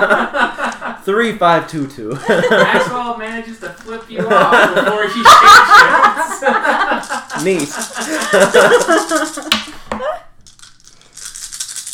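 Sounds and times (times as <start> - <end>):
laughter: 0.0 - 1.0, 2.1 - 3.2, 4.0 - 10.3
speech: 0.0 - 10.2
handful of dice rattling: 7.0 - 9.7, 10.4 - 11.9.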